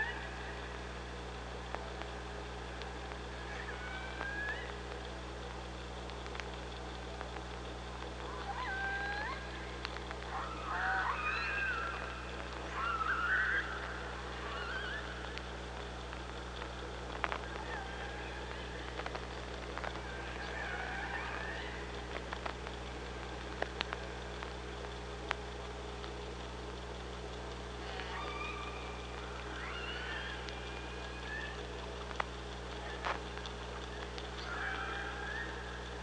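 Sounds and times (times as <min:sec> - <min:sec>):
low underwater hum: 0:00.0 - 0:36.0
orca calls: 0:03.3 - 0:04.9, 0:08.2 - 0:15.8, 0:17.3 - 0:22.4, 0:27.8 - 0:31.8, 0:33.8 - 0:36.0.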